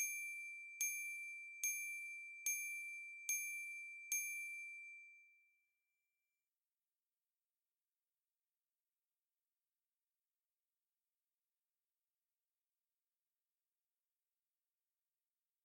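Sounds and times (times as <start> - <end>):
glockenspiel: 0.0 - 5.6.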